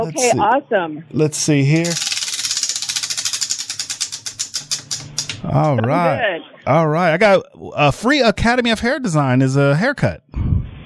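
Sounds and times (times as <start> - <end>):
speech: 0.0 - 2.1, 5.4 - 10.4
prize wheel spinning with ratcheting clicks: 1.7 - 5.4.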